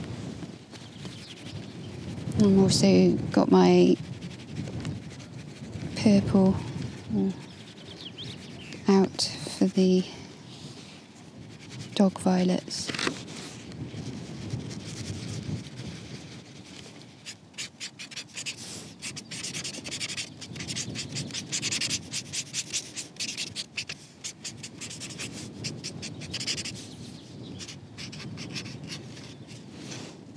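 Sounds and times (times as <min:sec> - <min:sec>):
Tombow marker pen colouring on paper: 0:00.8 - 0:09.8, 0:14.3 - 0:26.9, 0:27.5 - 0:29.6
speech: 0:02.4 - 0:04.1, 0:06.0 - 0:07.4, 0:09.1 - 0:10.2, 0:12.0 - 0:13.0.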